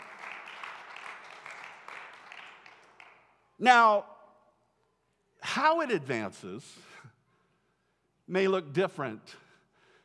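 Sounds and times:
audience applauding: 0.0 - 3.3
speech: 3.6 - 4.1, 5.5 - 6.9, 8.3 - 9.4.

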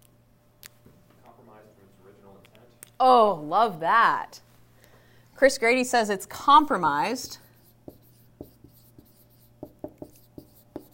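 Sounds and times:
speech: 2.0 - 4.4, 5.4 - 7.4
writing on a board: 7.2 - 10.9.

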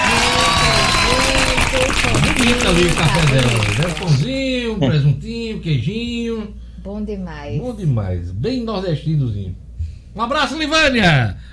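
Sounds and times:
audience applause: 0.0 - 4.2
speech: 2.4 - 11.5.

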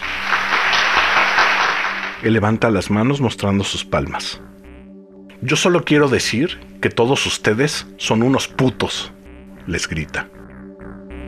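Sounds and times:
scattered applause from a small group: 0.0 - 2.3
speech: 2.2 - 4.6, 5.4 - 10.5.

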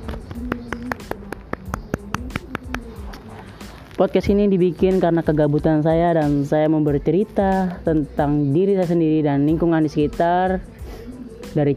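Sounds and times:
hands clapping: 0.1 - 3.2
speech: 4.0 - 11.7.

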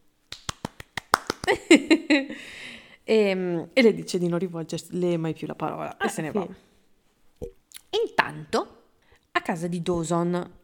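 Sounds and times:
applause: 0.3 - 1.6
speech: 1.5 - 6.7, 7.4 - 8.8, 9.4 - 10.6.

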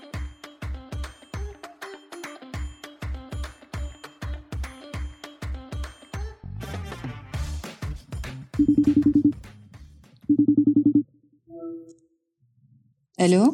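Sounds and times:
ringback tone of an outgoing phone call: 8.6 - 9.4, 10.3 - 11.0.

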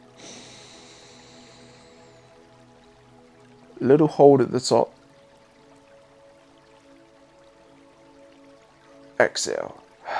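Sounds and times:
soft inhale through the nose during a breathwork exercise: 0.2 - 2.3
speech: 3.8 - 5.0, 9.3 - 9.8.

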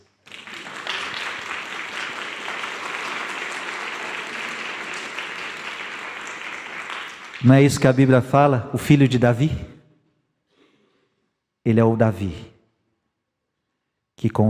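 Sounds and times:
crowd applauding: 0.0 - 8.1
speech: 7.4 - 9.7, 11.7 - 12.5, 14.2 - 14.4.

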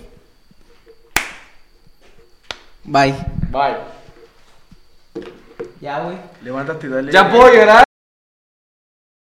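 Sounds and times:
hand claps: 1.1 - 1.6
speech: 2.9 - 4.0, 5.8 - 7.8.

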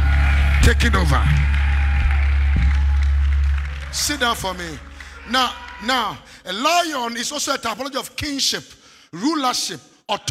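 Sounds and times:
audience clapping: 0.0 - 6.4
speech: 0.7 - 1.6, 3.9 - 10.2.

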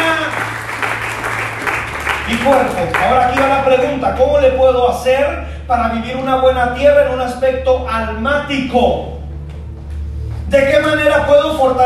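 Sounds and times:
audience applause: 0.0 - 4.1
speech: 2.4 - 9.2, 10.5 - 11.8.

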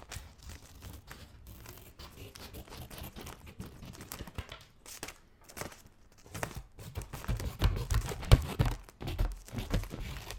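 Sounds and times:
scissors cutting paper and plastic: 0.0 - 4.5, 6.3 - 10.3.

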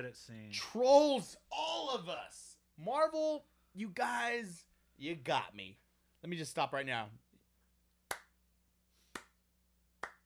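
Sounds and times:
speech: 0.0 - 7.2
hand clapping: 7.9 - 10.2.

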